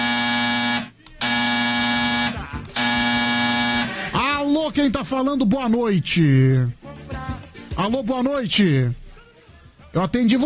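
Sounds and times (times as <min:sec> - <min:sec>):
telephone ringing: 0:00.0 - 0:04.2
speech: 0:04.8 - 0:06.8, 0:07.8 - 0:09.0, 0:10.0 - 0:10.4.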